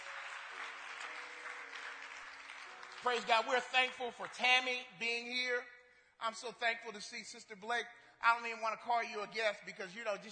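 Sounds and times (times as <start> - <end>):
church congregation clapping at the Washington Christian Center: 0.0 - 5.0
speech: 3.0 - 10.3.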